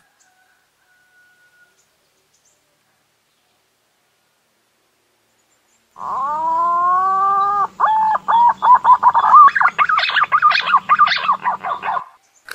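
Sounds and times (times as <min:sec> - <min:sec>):
green pigeon whistling: 0:06.0 - 0:12.2.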